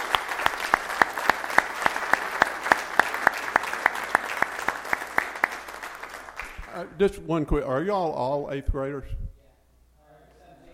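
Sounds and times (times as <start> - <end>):
audience applause: 0.0 - 6.8
speech: 6.8 - 9.2.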